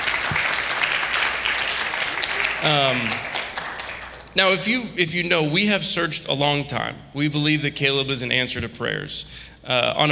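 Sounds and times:
audience applauding: 0.0 - 4.4
speech: 2.6 - 3.3, 4.4 - 10.0.

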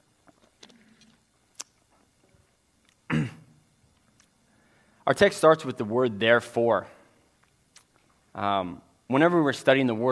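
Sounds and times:
faint mouth clicks: 0.6 - 1.8
speech: 5.1 - 7.0, 8.4 - 10.1.

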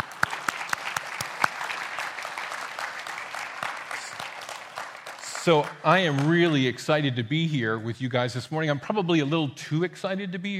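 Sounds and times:
audience applause: 0.0 - 6.7
speech: 5.5 - 10.5.

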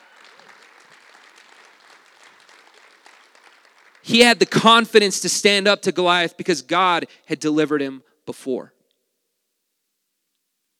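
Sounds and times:
audience clapping: 0.0 - 5.1
speech: 4.0 - 8.8.

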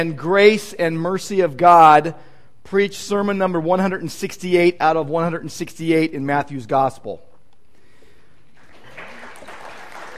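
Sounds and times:
speech: 0.0 - 7.3
audience clapping: 8.5 - 10.1.

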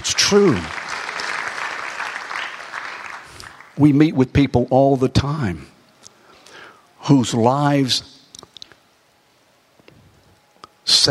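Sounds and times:
audience clapping: 0.0 - 4.0
speech: 0.3 - 0.8, 3.8 - 5.7, 7.1 - 8.1.

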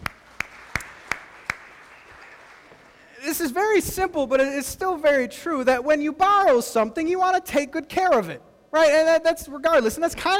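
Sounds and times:
audience applause: 0.0 - 3.1
speech: 3.4 - 10.3.

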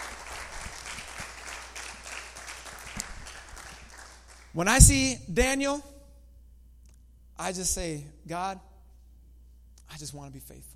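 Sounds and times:
audience hand clapping: 0.0 - 4.6
speech: 4.6 - 5.9, 7.4 - 8.7, 10.0 - 10.7.

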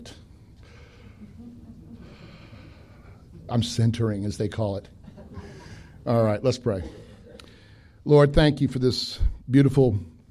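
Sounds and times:
preacher taking a deep breath: 0.3 - 1.4, 2.0 - 3.4, 5.3 - 6.0, 7.0 - 8.0
speech: 3.5 - 5.0, 6.0 - 7.0, 8.0 - 10.1.

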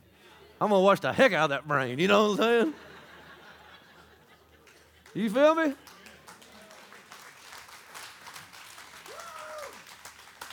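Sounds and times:
speech: 0.6 - 2.8, 5.2 - 6.0
laughter: 2.0 - 6.2
audience clapping: 4.6 - 10.5.

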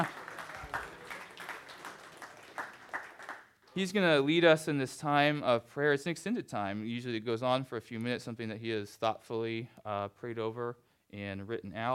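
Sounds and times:
audience clapping: 0.0 - 4.0
speech: 3.8 - 11.9.

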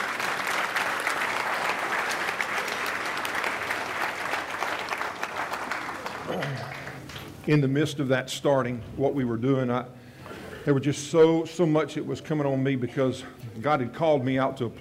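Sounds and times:
audience round of applause: 0.0 - 7.4
speech: 7.5 - 10.0, 10.6 - 14.7.

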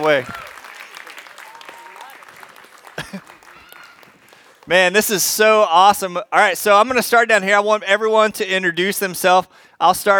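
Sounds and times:
speech: 0.0 - 0.4, 3.1 - 3.3, 4.7 - 10.1
audience applause: 0.0 - 5.1.

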